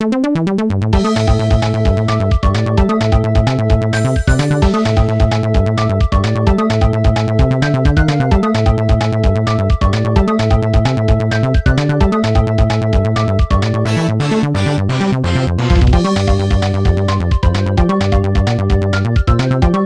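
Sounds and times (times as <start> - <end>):
fast-paced music: 0.2 - 19.8.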